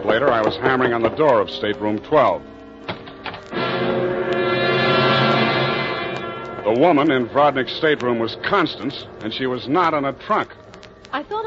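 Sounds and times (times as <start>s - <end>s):
speech: 0.0s - 2.6s, 6.6s - 11.4s
ship horn as ship leaves berth: 3.5s - 7.7s.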